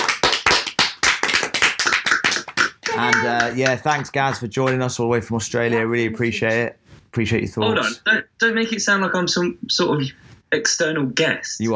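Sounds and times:
round of applause: 0:00.0 - 0:04.8
speech: 0:03.0 - 0:11.7.

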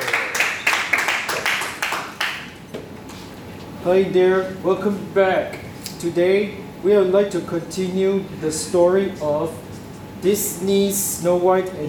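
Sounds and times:
audience applause: 0:00.0 - 0:02.5
speech: 0:03.8 - 0:09.6, 0:10.2 - 0:11.8.

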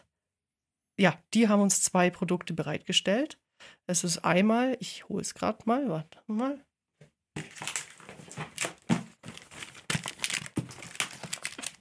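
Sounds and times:
speech: 0:01.0 - 0:06.7
rustling inside a cardboard box: 0:07.4 - 0:11.7.

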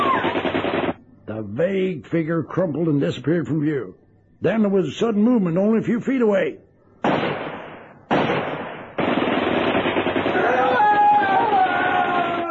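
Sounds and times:
machine gun burst: 0:00.0 - 0:01.0, 0:07.0 - 0:12.4
speech: 0:01.6 - 0:07.2.

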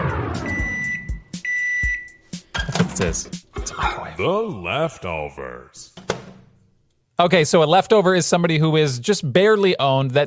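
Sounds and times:
microwave oven beeping: 0:00.3 - 0:02.2
speech: 0:02.7 - 0:06.0, 0:07.2 - 0:10.2.

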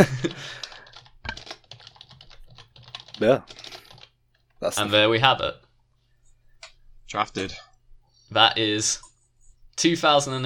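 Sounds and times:
speech: 0:00.0 - 0:00.6, 0:03.2 - 0:03.6, 0:04.6 - 0:05.6, 0:07.1 - 0:07.6, 0:08.3 - 0:09.1, 0:09.8 - 0:10.4
typing on a computer keyboard: 0:00.2 - 0:04.6.

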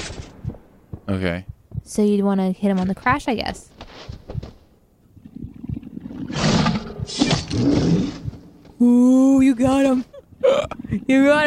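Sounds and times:
speech: 0:01.1 - 0:04.5, 0:08.8 - 0:11.4
video game bear growling and roaring: 0:06.1 - 0:08.5.

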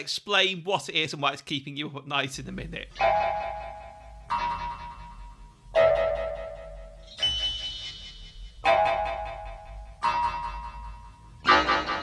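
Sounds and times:
speech: 0:00.0 - 0:03.6
slowed-down echoey town clock mechanism striking: 0:02.9 - 0:12.0.

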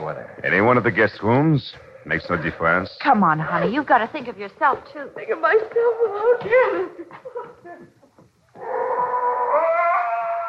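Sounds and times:
speech: 0:00.1 - 0:08.0
dog howling: 0:08.6 - 0:10.4.

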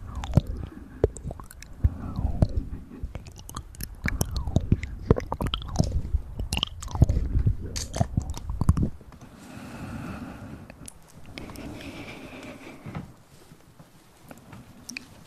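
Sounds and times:
ear massage rubbing: 0:00.0 - 0:09.0, 0:10.8 - 0:15.2
wet mouth sounds: 0:00.0 - 0:09.0, 0:10.6 - 0:12.8
hushed rustling: 0:00.0 - 0:15.2.

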